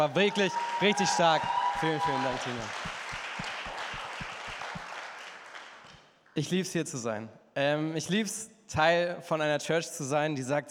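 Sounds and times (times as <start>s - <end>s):
speech: 0.0s - 2.9s, 6.4s - 10.6s
audience applause: 0.0s - 6.0s.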